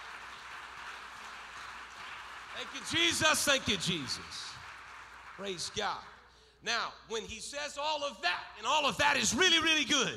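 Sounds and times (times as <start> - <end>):
audience clapping: 0.0 - 6.4
speech: 2.6 - 4.6, 5.4 - 10.1.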